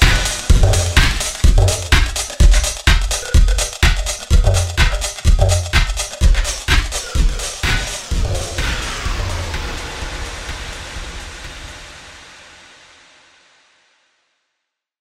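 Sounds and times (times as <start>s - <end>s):
reverb effect: 0.0s - 13.0s.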